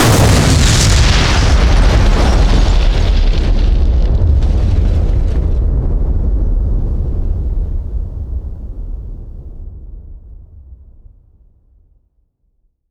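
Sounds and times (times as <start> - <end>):
explosions on the ground: 0.0 - 9.4.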